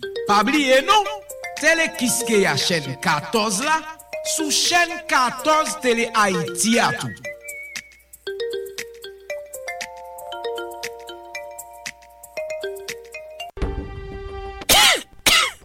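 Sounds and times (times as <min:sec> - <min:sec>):
phone ringtone electronic melody: 0:00.0 - 0:13.6
speech: 0:00.3 - 0:07.3
coughing or throat clearing: 0:14.7 - 0:15.6.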